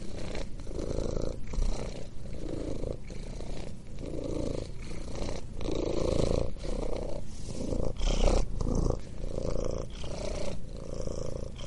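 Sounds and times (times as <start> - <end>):
cat purring: 0.0 - 11.6.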